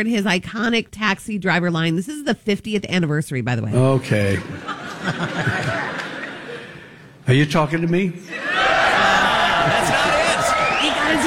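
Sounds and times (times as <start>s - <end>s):
speech: 0.0s - 6.0s, 7.3s - 9.8s
laughter: 3.8s - 7.1s, 8.3s - 11.2s
audience clapping: 8.9s - 11.2s.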